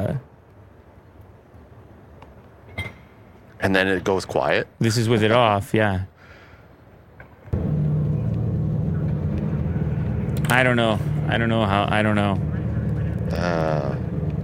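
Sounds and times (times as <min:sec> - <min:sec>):
speech: 0:03.6 - 0:06.1, 0:10.5 - 0:12.5, 0:13.3 - 0:14.0
amplified car exhaust note: 0:07.5 - 0:14.4.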